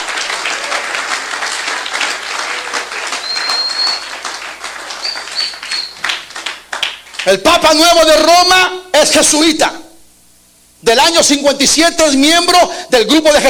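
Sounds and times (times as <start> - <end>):
people clapping for Christ: 0.0 - 7.6
speech: 7.3 - 9.8, 10.9 - 13.4.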